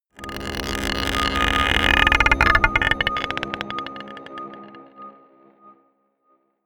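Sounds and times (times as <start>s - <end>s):
scraping a marble pot: 0.2s - 4.8s
dark drones: 0.2s - 5.6s.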